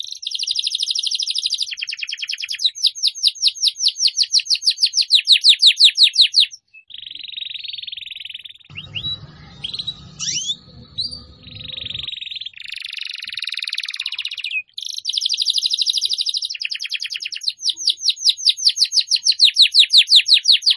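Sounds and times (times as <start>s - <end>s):
Atlantic canary singing: 0.1s - 20.7s
faint low rumble: 8.7s - 12.1s.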